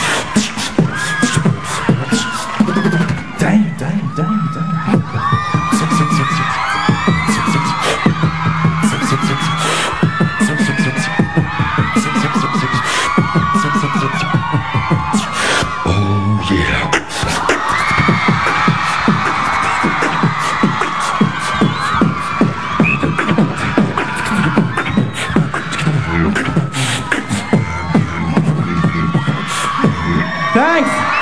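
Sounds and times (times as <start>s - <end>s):
beatboxing: 0.0s - 31.1s.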